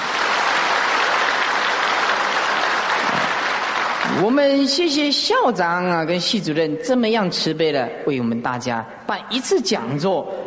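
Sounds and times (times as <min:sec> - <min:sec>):
audience applause: 0:00.0 - 0:04.4
speech: 0:04.2 - 0:10.4.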